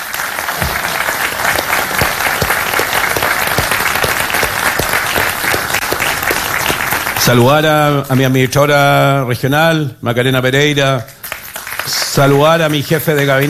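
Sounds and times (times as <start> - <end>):
audience applause: 0.0 - 7.7, 11.2 - 13.4
speech: 7.3 - 11.2, 11.9 - 13.4.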